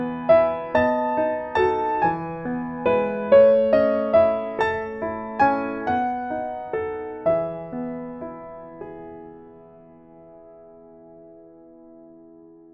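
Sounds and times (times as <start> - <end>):
piano: 0.0 - 12.7.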